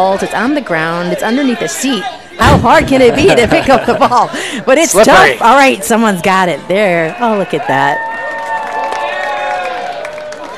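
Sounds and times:
speech: 0:00.0 - 0:08.1
crowd babble: 0:00.0 - 0:10.5
laughter: 0:02.4 - 0:05.4
baseball stadium crowd cheering during a Cardinals game: 0:06.9 - 0:10.5
applause: 0:08.1 - 0:10.5.

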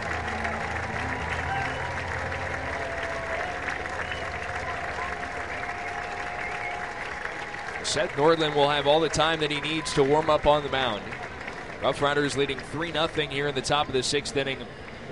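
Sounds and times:
baseball crowd applauding departing pitcher: 0:00.0 - 0:15.0
speech: 0:07.9 - 0:11.2, 0:11.8 - 0:15.0.

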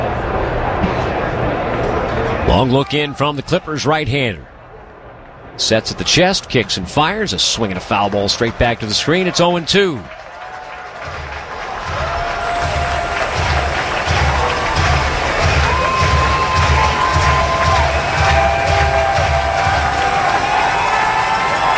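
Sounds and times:
baseball stadium crowd cheering at Huntington Park: 0:00.0 - 0:21.7
speech: 0:02.5 - 0:04.5, 0:05.6 - 0:10.2.

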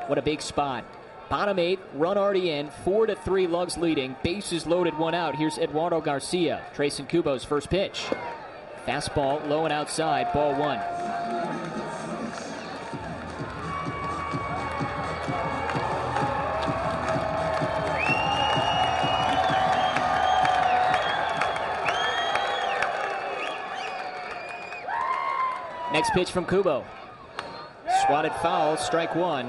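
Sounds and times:
baseball stadium crowd cheering: 0:00.0 - 0:07.1, 0:08.1 - 0:29.4
speech: 0:00.1 - 0:11.3, 0:26.0 - 0:27.0, 0:28.1 - 0:29.4
high whistles from baseball crowd: 0:17.8 - 0:25.0.

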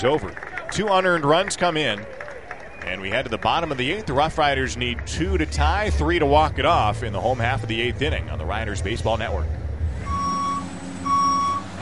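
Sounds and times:
speech: 0:00.0 - 0:02.2, 0:02.8 - 0:09.6
low engine rumble of heavy construction vehicle: 0:00.0 - 0:11.8
construction vehicle reversing beeps: 0:10.0 - 0:11.7.

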